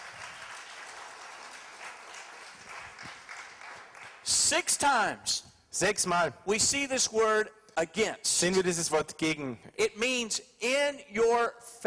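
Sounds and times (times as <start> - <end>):
audience applause: 0.0 - 4.2
speech: 4.3 - 11.8.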